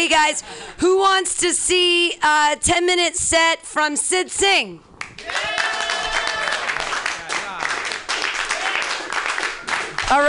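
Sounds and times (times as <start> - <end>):
speech: 0.0 - 5.6
audience clapping: 5.0 - 10.2
excited whoops and cheering voices: 5.2 - 6.9.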